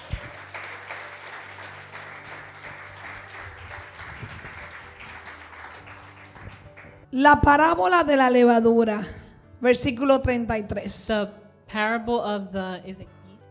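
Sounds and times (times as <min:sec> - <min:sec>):
audience applause: 0:00.0 - 0:07.0
speech: 0:07.1 - 0:13.2.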